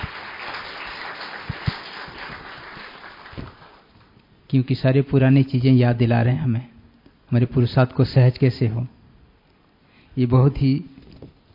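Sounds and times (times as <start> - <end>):
audience applause at a spiritual retreat program: 0.0 - 3.9
speech: 4.5 - 6.7, 7.3 - 9.0, 10.2 - 10.9.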